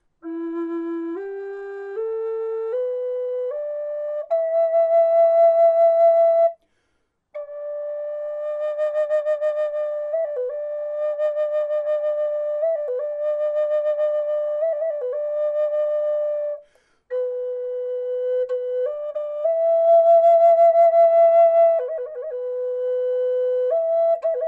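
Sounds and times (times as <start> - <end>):
natural wood flute: 0.0 - 24.4.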